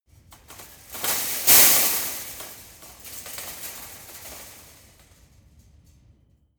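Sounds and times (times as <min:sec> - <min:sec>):
landing on metal fence: 0:00.4 - 0:05.1.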